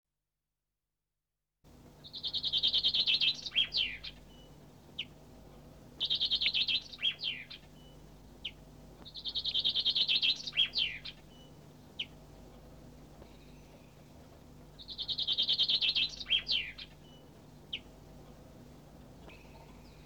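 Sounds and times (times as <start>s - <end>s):
bird giving varied chattering calls: 2.1s - 4.2s, 6.0s - 7.6s, 9.2s - 11.2s, 14.8s - 17.9s, 19.2s - 20.0s.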